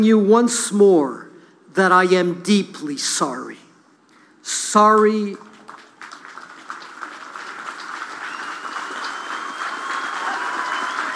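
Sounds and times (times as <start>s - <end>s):
speech: 0.0s - 3.6s, 4.4s - 5.5s
crowd applauding: 5.0s - 11.1s.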